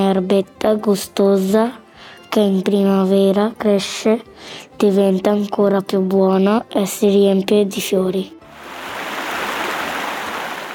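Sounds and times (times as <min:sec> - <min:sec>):
speech: 0:00.0 - 0:08.4
flowing mountain stream: 0:08.5 - 0:10.7.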